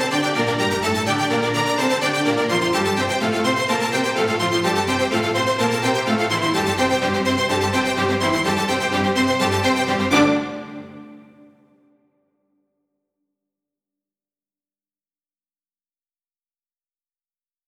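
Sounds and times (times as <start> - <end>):
tension violin strings: 0.0 - 11.8.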